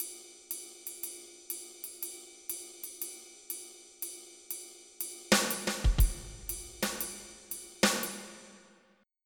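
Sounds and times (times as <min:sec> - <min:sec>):
swing music: 0:05.5 - 0:07.2.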